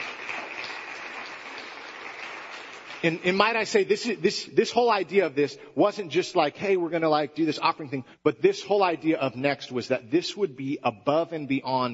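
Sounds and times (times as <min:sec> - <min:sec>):
audience clapping: 0:00.0 - 0:03.6
speech: 0:03.0 - 0:11.9.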